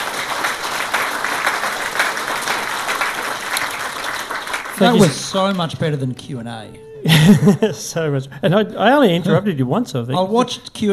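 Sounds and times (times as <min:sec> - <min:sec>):
audience applause for panellists: 0:00.0 - 0:05.7
laughter: 0:04.8 - 0:05.3, 0:07.0 - 0:10.4
speech: 0:04.8 - 0:10.9.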